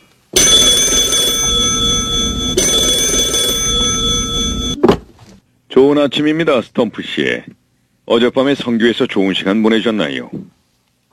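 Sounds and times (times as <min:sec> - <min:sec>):
telephone ringing: 0:00.4 - 0:04.8
speech: 0:05.8 - 0:10.6.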